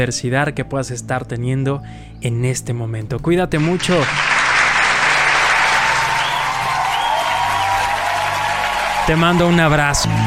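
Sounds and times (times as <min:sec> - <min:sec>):
speech: 0:00.0 - 0:04.4, 0:09.1 - 0:10.2
crowd applause: 0:03.6 - 0:10.2.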